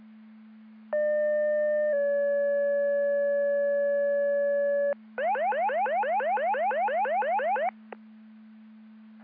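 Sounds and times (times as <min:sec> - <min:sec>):
siren: 0:01.0 - 0:07.7.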